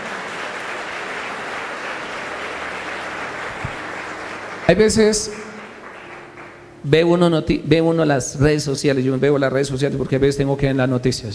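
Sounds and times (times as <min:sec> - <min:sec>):
audience applause: 0:00.0 - 0:06.8
speech: 0:04.7 - 0:05.5, 0:06.8 - 0:11.3.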